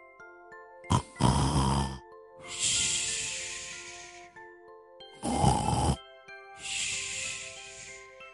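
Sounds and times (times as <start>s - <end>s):
person snoring loudly: 0.9s - 4.0s, 5.2s - 6.0s, 6.6s - 8.0s.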